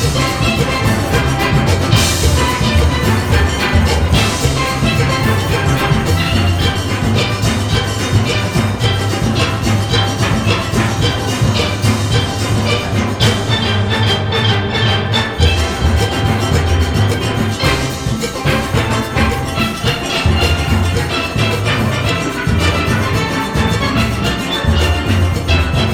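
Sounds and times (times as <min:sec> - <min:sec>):
rain melody: 0:00.0 - 0:25.9.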